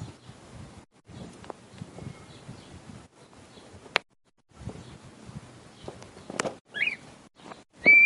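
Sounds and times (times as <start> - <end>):
male red-winged tinamou singing to the female: 1.9 - 2.7, 6.7 - 7.0, 7.8 - 8.0.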